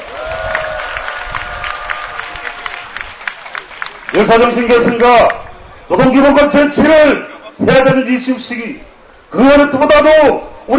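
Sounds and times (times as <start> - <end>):
crowd applauding: 0.0 - 5.4
speech: 4.2 - 10.7.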